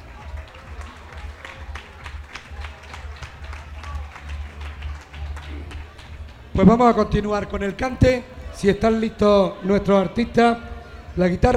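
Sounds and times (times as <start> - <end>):
audience applause: 0.0 - 6.5
speech: 6.6 - 11.5.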